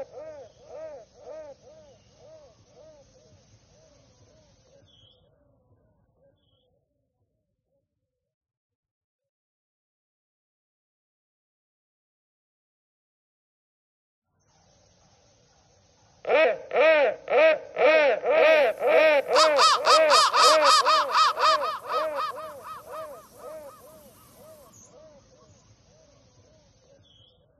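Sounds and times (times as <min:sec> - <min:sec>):
crow cawing: 0:00.0 - 0:01.8, 0:16.3 - 0:24.7.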